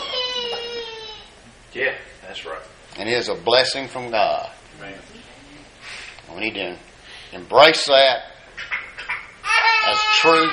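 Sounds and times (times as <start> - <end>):
baby crying in church: 0.0 - 1.4, 9.2 - 10.5
speech: 1.8 - 5.0, 6.3 - 8.3, 9.9 - 10.5.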